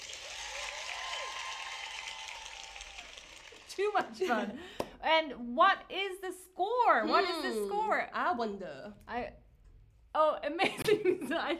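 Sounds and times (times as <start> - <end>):
applause: 0.0 - 4.2
speech: 3.8 - 9.4, 10.2 - 11.5.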